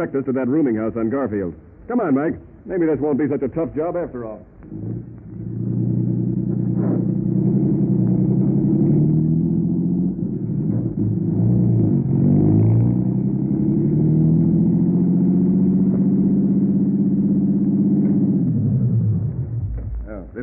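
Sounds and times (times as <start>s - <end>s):
speech: 0.0s - 5.1s
car engine droning as the vehicle drives: 0.0s - 20.4s.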